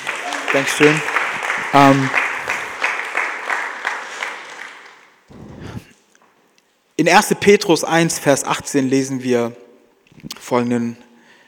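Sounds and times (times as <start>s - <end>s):
crowd applause: 0.0s - 5.8s
speech: 0.5s - 2.2s, 7.0s - 9.6s, 10.2s - 11.0s.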